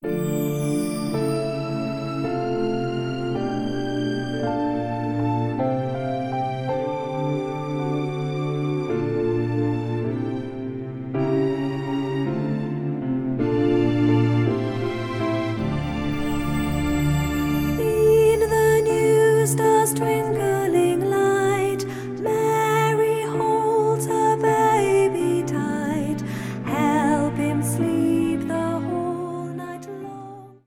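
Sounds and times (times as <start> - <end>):
sleepy song: 0.0 - 30.6.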